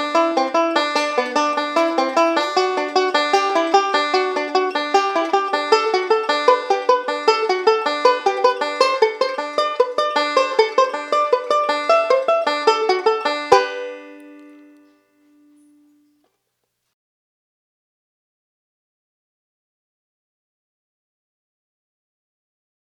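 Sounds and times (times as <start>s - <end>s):
guitar playing thirds on the 3rd and 4th strings: 0.0s - 16.3s.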